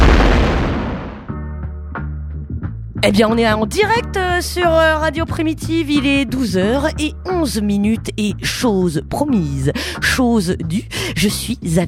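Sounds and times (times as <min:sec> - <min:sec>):
deep rumbling explosion sound effect representing the Big Bang: 0:00.0 - 0:01.4
speech: 0:03.0 - 0:11.8.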